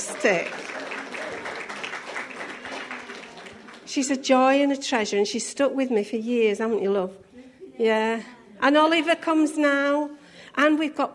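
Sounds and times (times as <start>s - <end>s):
quiet applause from a small audience at a weekly community group: 0.0s - 4.3s
speech: 0.1s - 0.7s, 3.9s - 7.2s, 7.8s - 11.1s.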